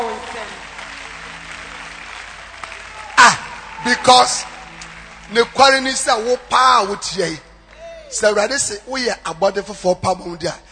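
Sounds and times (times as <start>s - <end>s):
audience clapping hands: 0.0s - 8.4s
speech: 3.9s - 4.5s, 5.3s - 7.5s, 8.1s - 10.6s.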